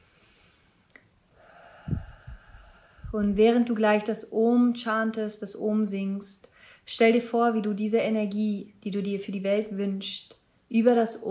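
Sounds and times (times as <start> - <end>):
deep breath in and out before chanting: 0.0 - 3.6
speech: 3.1 - 11.2.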